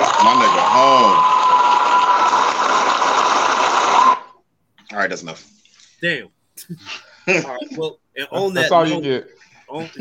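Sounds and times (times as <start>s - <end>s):
crowd round of applause: 0.0s - 4.4s
speech: 5.1s - 9.9s.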